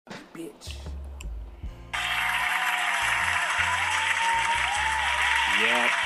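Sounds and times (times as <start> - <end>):
short applause: 1.9 - 6.0.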